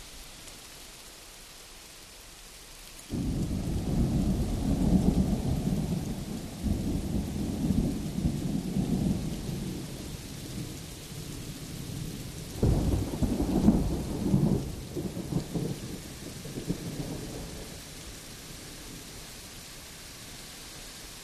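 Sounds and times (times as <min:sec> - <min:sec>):
distant medium thunder: 0:03.1 - 0:09.9, 0:12.6 - 0:17.8.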